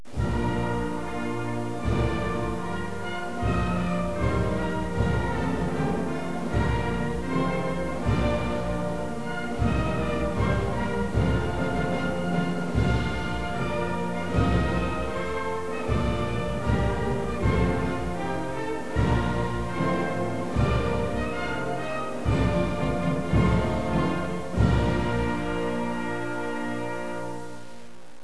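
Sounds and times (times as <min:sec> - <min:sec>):
anthem music: 0:00.1 - 0:28.0.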